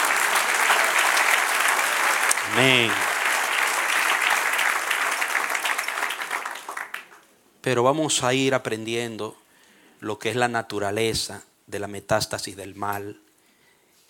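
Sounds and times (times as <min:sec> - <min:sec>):
audience applause: 0:00.0 - 0:07.2
speech: 0:02.5 - 0:03.1, 0:07.7 - 0:09.4, 0:10.0 - 0:13.2.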